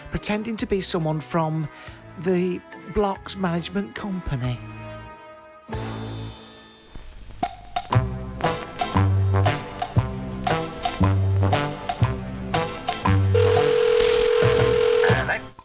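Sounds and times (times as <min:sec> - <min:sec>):
speech: 0:00.1 - 0:04.8
low rhythmic thumps: 0:07.2 - 0:13.5
telephone ringing tone: 0:13.3 - 0:15.5
telephone dialing beeps: 0:13.4 - 0:15.3.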